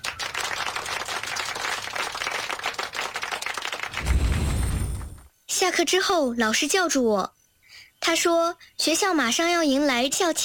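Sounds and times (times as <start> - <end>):
classmates clapping: 0.0 - 4.5
speech: 5.7 - 7.4, 8.1 - 10.4.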